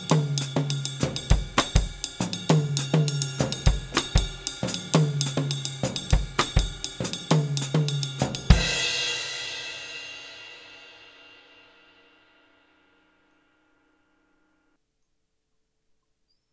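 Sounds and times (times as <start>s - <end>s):
guaguanco rumba percussion: 0.0s - 10.2s.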